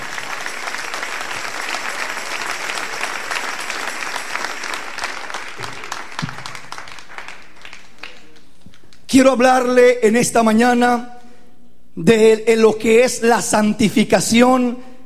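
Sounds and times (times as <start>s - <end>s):
audience applause: 0.0s - 9.0s
speech: 9.1s - 11.1s, 12.0s - 14.9s.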